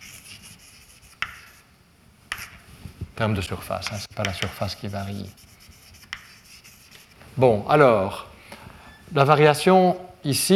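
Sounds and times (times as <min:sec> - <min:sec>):
writing on a board during a physics lecture: 0:00.0 - 0:01.7, 0:02.3 - 0:02.6, 0:03.9 - 0:07.2
speech: 0:03.2 - 0:05.5, 0:07.4 - 0:08.3, 0:09.1 - 0:10.5
sharp taps on a board: 0:03.8 - 0:04.6.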